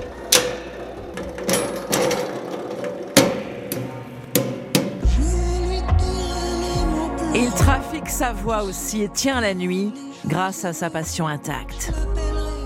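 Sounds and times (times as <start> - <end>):
springs in a sound-making machine clanking and twanging: 0.0 - 5.1
low rumbling drone: 5.0 - 9.4
speech: 8.0 - 12.2.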